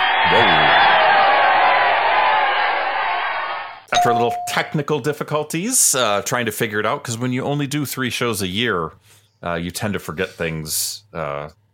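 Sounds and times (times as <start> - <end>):
crowd applause: 0.0 - 3.8
speech: 4.6 - 11.7.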